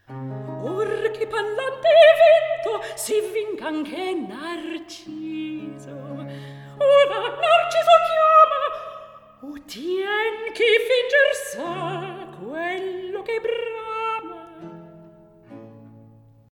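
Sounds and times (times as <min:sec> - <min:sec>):
recitative singing: 0:00.6 - 0:14.8.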